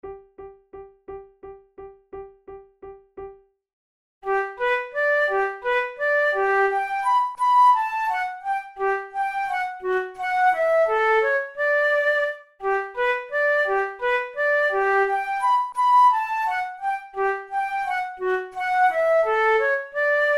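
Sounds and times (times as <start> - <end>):
waltz duet: 4.3 - 20.3.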